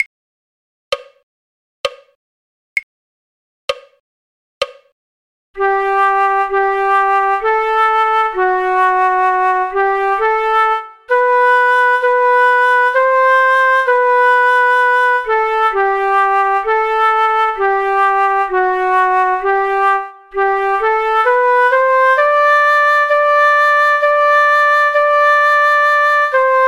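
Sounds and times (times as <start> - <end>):
flute: 5.6 - 26.6.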